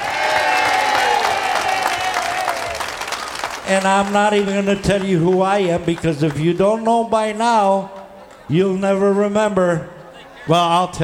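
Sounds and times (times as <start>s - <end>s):
audience applause: 0.0s - 6.8s
speech: 3.7s - 11.0s.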